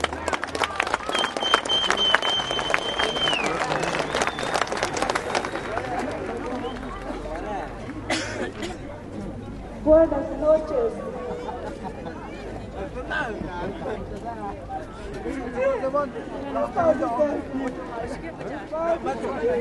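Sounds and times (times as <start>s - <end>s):
applause at an evening gathering: 0.0s - 7.5s
murmur of many voices at an evening gathering: 0.0s - 19.5s
whistle-like tone: 1.1s - 4.6s.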